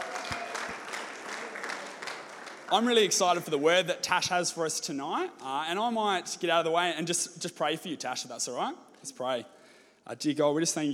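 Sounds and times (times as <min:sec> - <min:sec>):
round of applause: 0:00.0 - 0:03.5
speech: 0:02.7 - 0:10.9.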